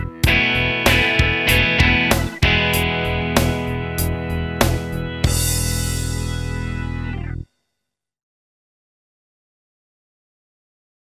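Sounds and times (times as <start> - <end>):
guitar playing chord variations: 0.0 - 7.4.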